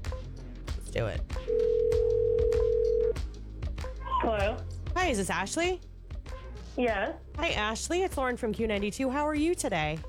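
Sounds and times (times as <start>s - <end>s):
speech: 0.9s - 1.6s, 4.2s - 5.9s, 6.8s - 10.0s
telephone line tone: 1.5s - 3.2s.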